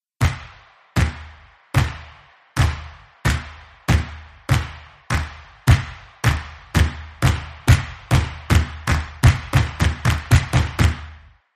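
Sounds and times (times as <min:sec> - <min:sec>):
hype stomp music: 0:00.2 - 0:11.5.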